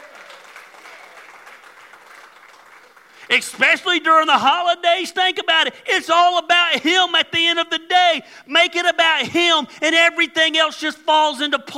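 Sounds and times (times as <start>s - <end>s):
audience clapping: 0.0s - 3.6s
speech: 3.3s - 11.7s.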